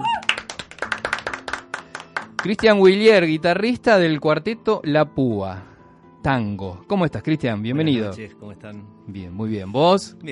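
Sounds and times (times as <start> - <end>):
small group applauding: 0.0 - 2.9
speech: 2.4 - 10.2.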